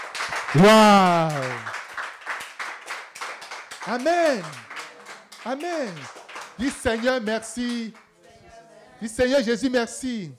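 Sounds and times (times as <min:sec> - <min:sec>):
congregation at an Easter seminar church service clapping in rhythm: 0:00.0 - 0:08.1
speech: 0:00.3 - 0:01.8, 0:03.9 - 0:04.7, 0:05.4 - 0:08.0, 0:09.0 - 0:10.3.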